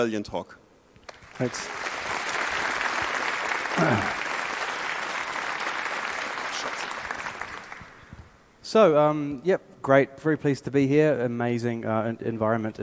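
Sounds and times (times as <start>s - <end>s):
speech: 0.0s - 0.6s, 1.4s - 1.8s, 3.8s - 4.2s, 8.7s - 12.8s
audience applause: 1.0s - 8.1s.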